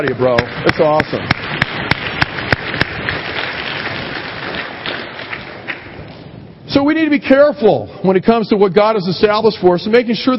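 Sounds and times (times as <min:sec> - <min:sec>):
speech: 0:00.0 - 0:01.6, 0:06.8 - 0:10.3
audience applause: 0:00.3 - 0:05.9.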